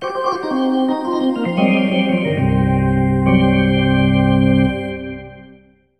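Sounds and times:
hockey arena organ: 0.0s - 5.7s.

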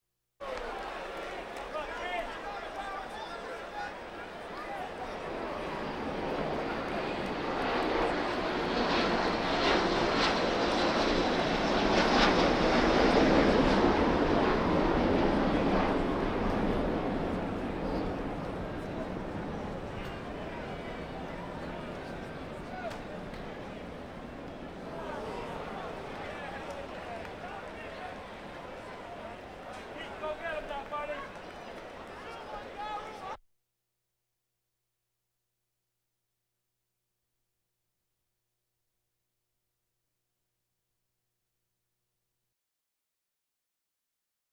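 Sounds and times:
crowds: 0.4s - 33.4s.

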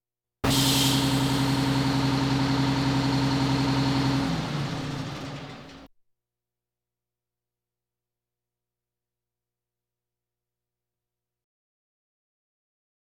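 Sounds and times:
fire engine sirens: 0.4s - 5.9s.

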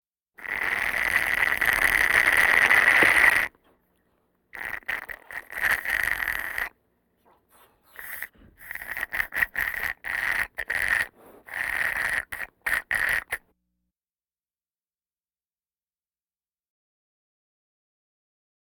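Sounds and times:
breathing vocal effects: 0.4s - 13.4s.

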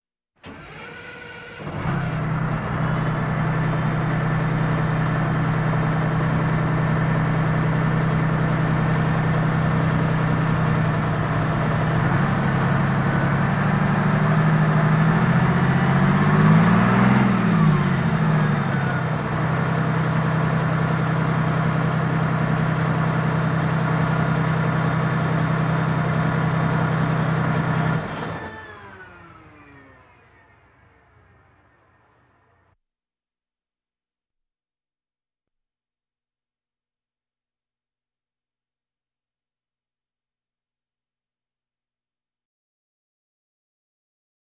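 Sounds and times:
military vehicles: 0.4s - 32.8s.

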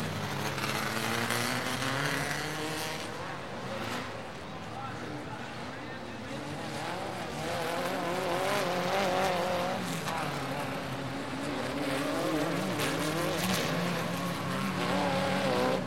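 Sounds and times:
dune buggies racing around a track: 0.0s - 15.8s.

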